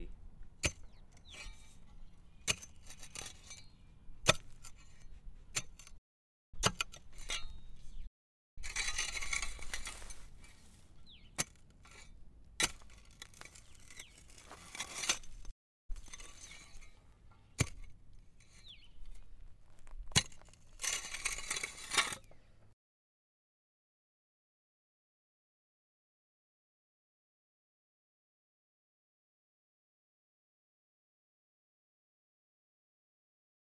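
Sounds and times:
pick digging: 0.6 - 6.0, 6.6 - 22.7.

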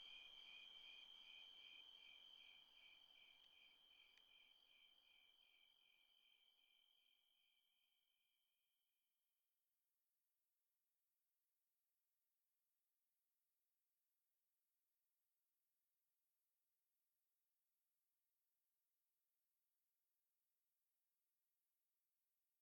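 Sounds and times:
cricket chirping by a creek: 0.0 - 7.6.

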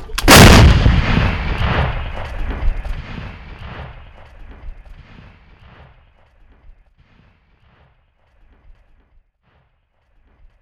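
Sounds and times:
M777 howitzer firing: 0.2 - 4.4.

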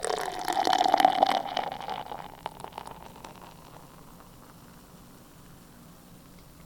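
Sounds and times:
liquid pouring: 0.0 - 4.7.

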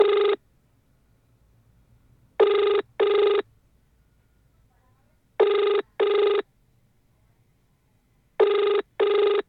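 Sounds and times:
phone ringing: 0.0 - 0.4, 2.4 - 3.5, 5.4 - 6.4, 8.4 - 9.4.

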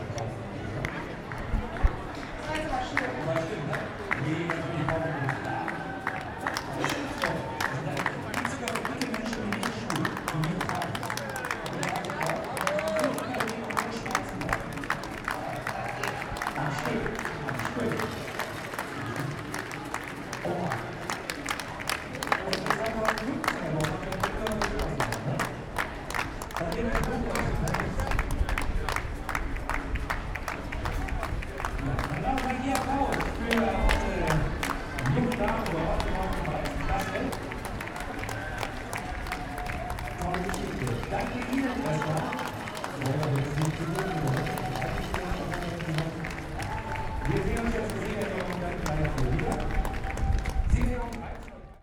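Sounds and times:
marathon spectators clapping in Germany: 0.2 - 51.7
marathon crowd cheering in Germany: 0.8 - 51.7.

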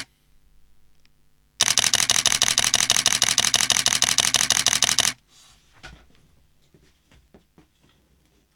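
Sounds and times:
camera shutter: 1.6 - 5.2.

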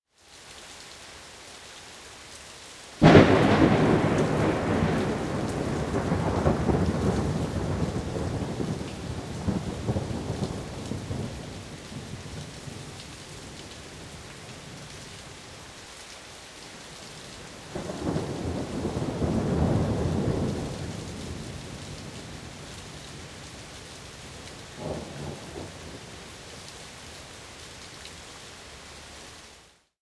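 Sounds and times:
rain: 0.0 - 30.0
thunder: 3.0 - 13.0, 17.7 - 23.5, 24.8 - 26.2.

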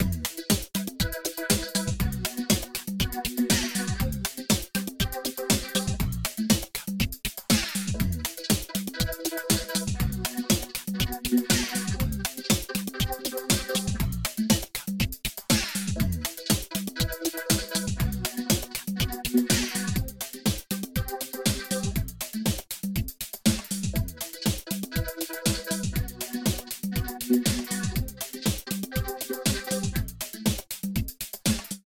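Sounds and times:
pop rock loop: 0.0 - 22.6, 23.4 - 30.6.

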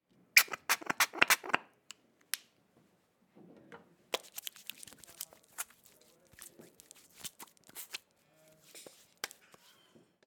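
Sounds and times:
hands rubbing with hand sanitiser: 0.4 - 1.6, 4.2 - 9.7.

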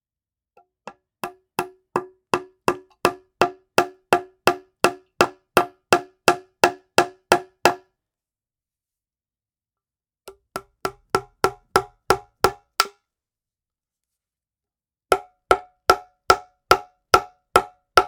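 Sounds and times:
hammering a nail: 0.9 - 7.9, 10.3 - 13.0, 15.1 - 18.0.

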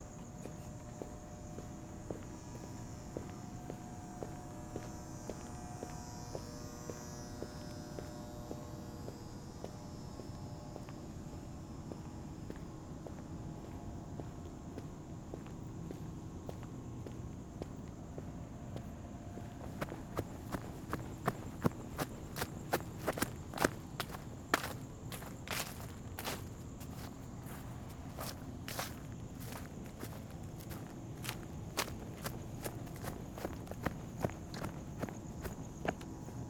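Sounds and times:
footsteps walking in a park alley at night: 0.4 - 6.5, 11.9 - 36.3
buzzing light: 0.6 - 12.2.

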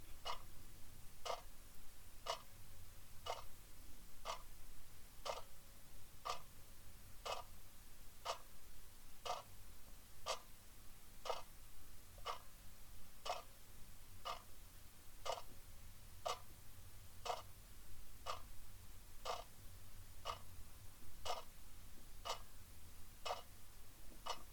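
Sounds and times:
big wall clock ticking: 0.2 - 0.4, 1.2 - 1.4, 2.2 - 2.5, 3.2 - 3.5, 4.2 - 4.4, 5.2 - 5.5, 6.2 - 6.5, 7.2 - 7.5, 8.2 - 8.5, 9.2 - 9.5, 10.2 - 10.5, 11.2 - 11.5, 12.2 - 12.5, 13.2 - 13.5, 14.2 - 14.5, 15.2 - 15.5, 16.2 - 16.5, 17.2 - 17.5, 18.2 - 18.5, 19.2 - 19.5, 20.2 - 20.5, 21.2 - 21.5, 22.2 - 22.5, 23.2 - 23.5, 24.2 - 24.5.

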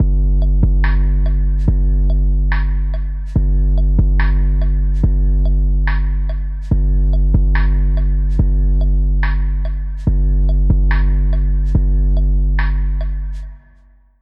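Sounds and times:
dark beat at 130 BPM in four four: 0.0 - 13.8.

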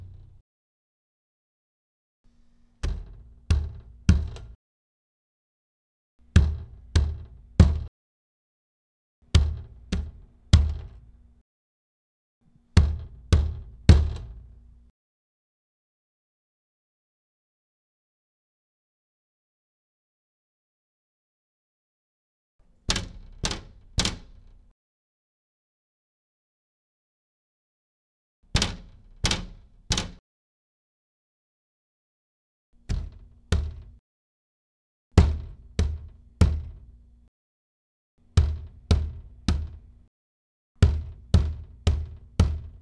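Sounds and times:
door being punched: 2.9 - 4.5, 6.3 - 7.9, 9.3 - 11.0, 12.8 - 14.4, 28.5 - 30.2, 32.9 - 34.0, 35.2 - 36.9, 38.3 - 39.9, 40.8 - 42.7.

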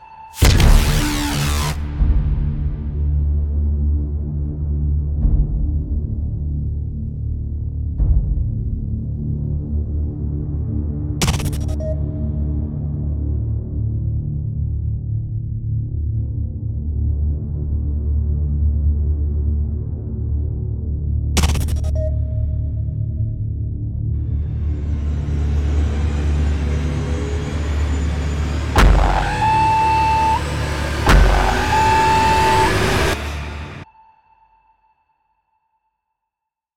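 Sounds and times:
epic sci-fi trailer music: 0.3 - 34.2.

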